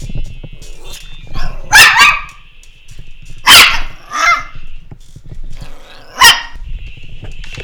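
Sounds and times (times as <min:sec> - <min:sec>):
animal barking: 0:00.6 - 0:02.5, 0:03.4 - 0:04.7, 0:05.5 - 0:06.7.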